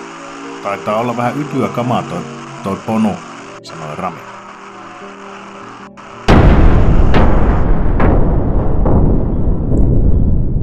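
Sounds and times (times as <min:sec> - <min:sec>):
speech: 0:00.6 - 0:04.3
cracking bursts: 0:01.7 - 0:09.0
generator exploding with deep boom: 0:06.2 - 0:10.6.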